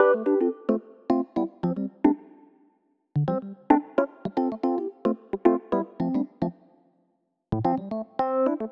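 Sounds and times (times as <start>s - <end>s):
Rhodes electric piano: 0.0s - 2.2s, 3.7s - 6.5s, 7.6s - 8.7s.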